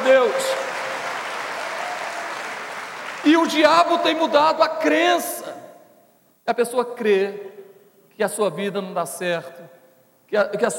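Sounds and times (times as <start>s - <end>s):
audience applause: 0.0s - 3.6s
speech: 3.2s - 5.3s, 6.5s - 7.6s, 8.2s - 10.7s.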